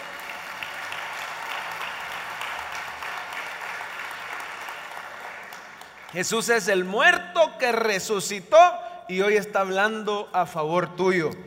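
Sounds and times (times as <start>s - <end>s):
audience applause: 0.0s - 6.4s
speech: 6.1s - 11.4s.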